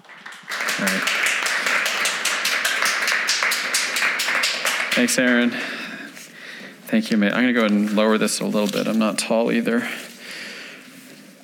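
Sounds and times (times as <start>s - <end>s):
audience applause: 0.0s - 5.6s
speech: 5.0s - 5.8s, 6.9s - 10.0s.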